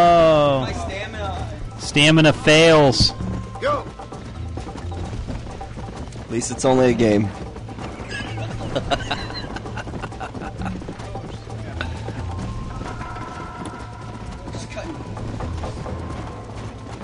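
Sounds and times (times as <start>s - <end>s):
video game horse hooves galloping: 0.0s - 17.0s
speech: 2.0s - 4.1s, 6.3s - 7.5s, 8.7s - 9.0s
laughter: 8.1s - 12.3s.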